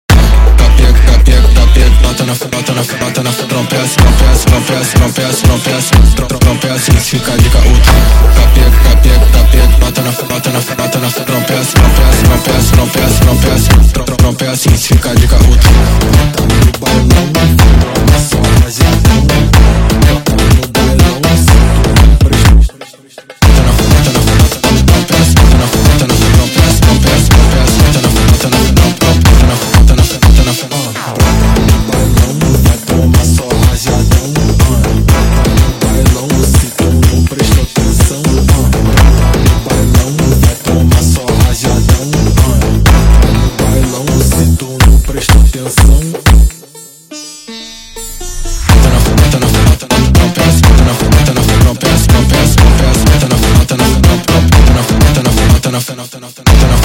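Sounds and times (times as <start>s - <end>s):
sped up phonk montagem music: 0.0s - 56.8s.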